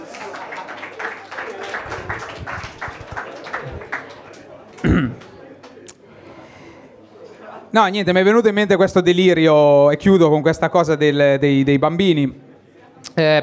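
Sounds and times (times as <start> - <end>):
audience applause: 0.0 - 5.8
scattered voices: 1.3 - 7.8
speech: 7.7 - 12.5, 13.1 - 13.4.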